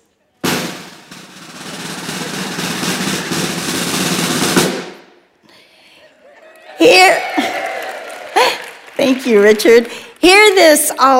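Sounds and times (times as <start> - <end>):
drum roll: 0.4 - 5.2
speech: 6.8 - 7.4, 9.2 - 11.1.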